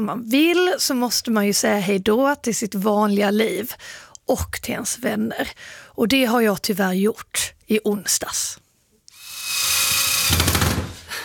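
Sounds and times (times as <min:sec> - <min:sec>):
speech: 0:00.0 - 0:08.6
power drill driving a screw while a sign is assembled: 0:09.1 - 0:11.0.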